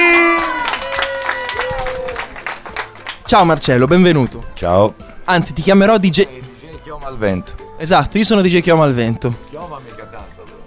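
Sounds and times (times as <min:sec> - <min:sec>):
whoops or whistles: 0:00.0 - 0:02.2
crowd applause: 0:00.0 - 0:03.3
speech: 0:03.3 - 0:10.4.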